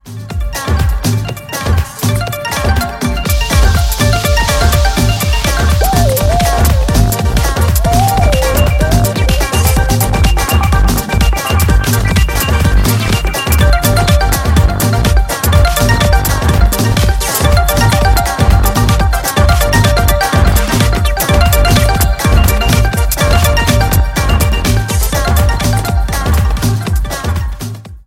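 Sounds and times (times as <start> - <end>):
Vivo Y54s phone ringtone: 0.4 - 26.9.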